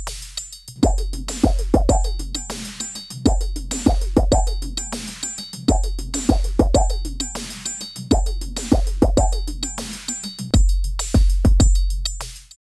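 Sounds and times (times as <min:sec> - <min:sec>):
acid synth line beat through Elektron Analog Heat: 0:00.8 - 0:12.4.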